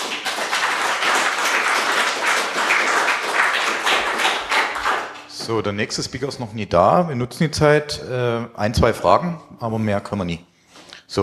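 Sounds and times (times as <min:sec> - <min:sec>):
audience applause: 0:00.0 - 0:05.3
speech: 0:05.5 - 0:10.5.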